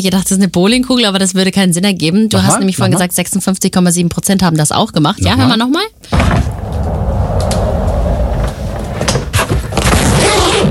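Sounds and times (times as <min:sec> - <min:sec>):
speech: 0:00.0 - 0:07.0
rolling suitcase rolled along: 0:06.4 - 0:10.6.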